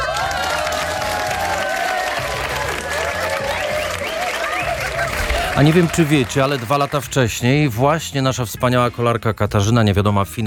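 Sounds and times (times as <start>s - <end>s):
applause: 0.0s - 7.6s
speech: 5.6s - 10.4s.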